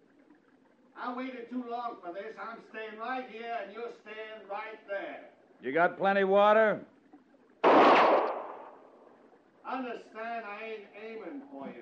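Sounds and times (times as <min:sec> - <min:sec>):
speech: 0:01.0 - 0:07.0, 0:09.7 - 0:11.8
pistol shot: 0:07.6 - 0:08.8.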